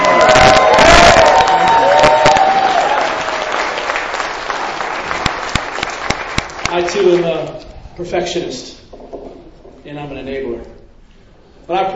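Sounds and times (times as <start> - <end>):
audience applause: 0.0 - 7.2
speech: 6.9 - 7.4, 8.0 - 8.8, 9.9 - 10.8, 11.7 - 11.9.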